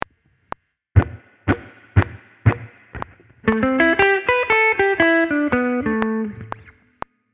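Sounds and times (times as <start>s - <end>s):
blues music: 1.0s - 6.8s.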